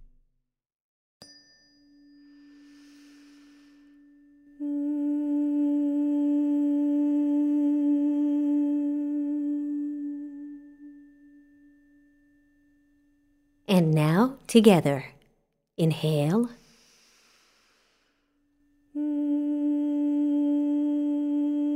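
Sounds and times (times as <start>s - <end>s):
person humming with mouth closed: 4.6s - 10.9s, 19.0s - 21.7s
speech: 14.5s - 15.2s, 15.8s - 16.6s.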